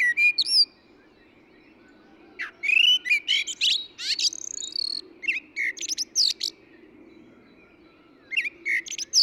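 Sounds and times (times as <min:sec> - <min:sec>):
Eurasian blackbird singing: 0:00.0 - 0:09.2.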